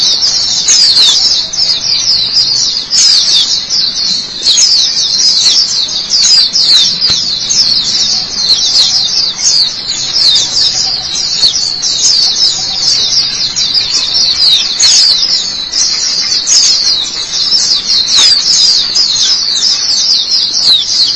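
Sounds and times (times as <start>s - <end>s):
white-eye twittering song: 0.0s - 21.1s.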